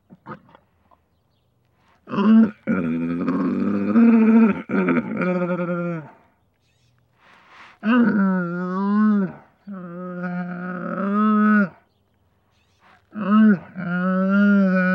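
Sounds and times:
camel bellowing: 2.0s - 6.2s, 7.8s - 11.8s, 12.7s - 14.9s.

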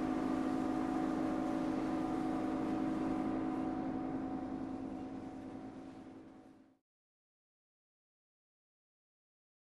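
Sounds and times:
Ranger boat on board: 0.0s - 6.8s.

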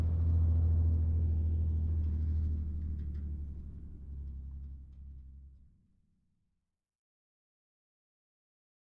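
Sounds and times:
2.5 T truck passing slowly: 0.0s - 5.8s.

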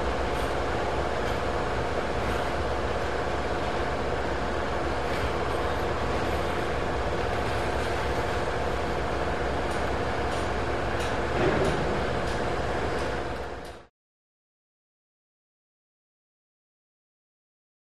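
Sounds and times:
warehouse exterior ambience: 0.0s - 13.9s.

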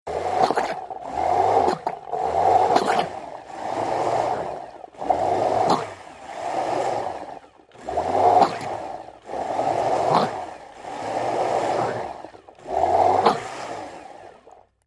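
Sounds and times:
blender slow pulse: 0.1s - 14.8s.

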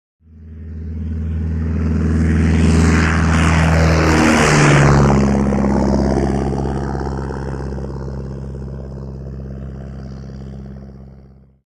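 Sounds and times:
Tiger Moth propeller plane taking off and flying overhead: 0.2s - 11.6s.

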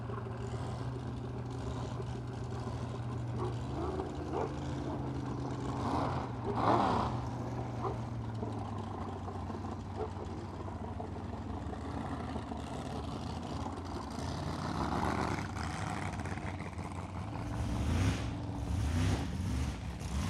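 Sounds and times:
drag boats racing: 0.0s - 20.2s.

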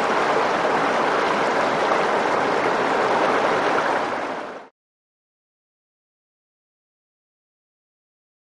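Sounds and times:
medium river running medium-fast with roar: 0.0s - 4.7s.

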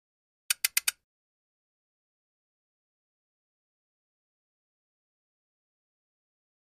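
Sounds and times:
flash gear four low pi sound: 0.5s - 1.0s.

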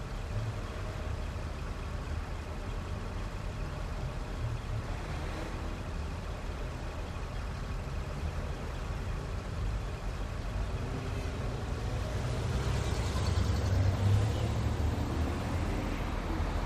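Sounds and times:
cars passing by in city traffic: 0.0s - 16.6s.

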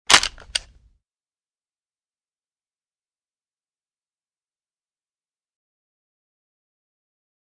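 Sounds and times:
door lock clicks: 0.1s - 0.8s.

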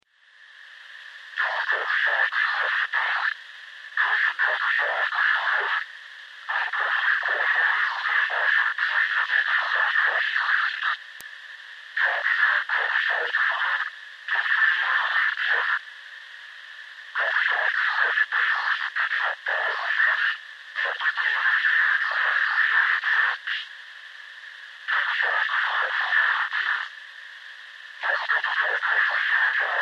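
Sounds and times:
voices over communicator static: 1.3s - 11.2s, 11.9s - 29.8s
communicator static: 1.4s - 3.4s, 4.0s - 11.1s, 12.0s - 15.8s, 17.1s - 23.7s, 24.8s - 26.9s, 28.0s - 29.8s.

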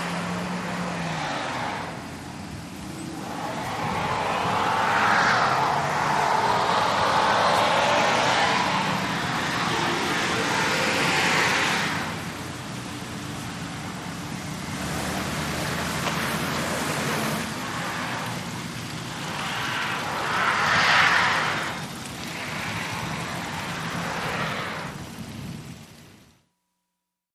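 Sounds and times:
exterior background traffic on wet road: 0.0s - 26.4s.

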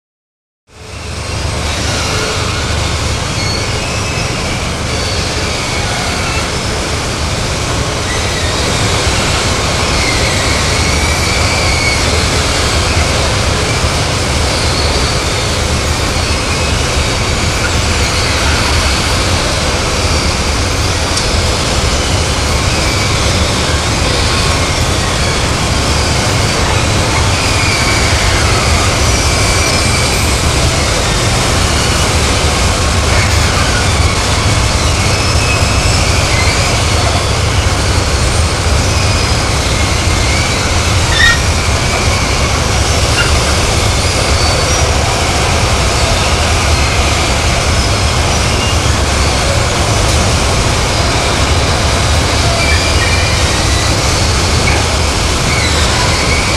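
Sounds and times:
Hydra pulper conveyor belt: 0.8s - 56.5s.

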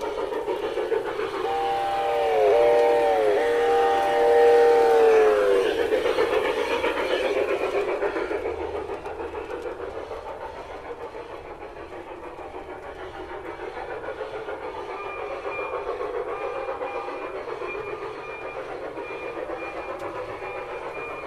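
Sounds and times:
antique toy steam train: 0.0s - 21.2s.

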